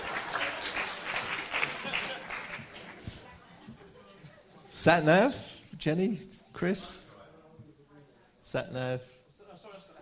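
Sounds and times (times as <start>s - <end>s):
audience applause: 0.0s - 3.0s
speech: 4.8s - 7.0s, 8.5s - 9.2s.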